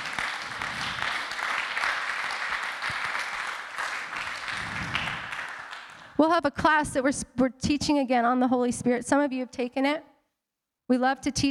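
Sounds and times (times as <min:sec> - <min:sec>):
crowd clapping: 0:00.0 - 0:06.2
speech: 0:06.2 - 0:10.1, 0:10.9 - 0:11.4.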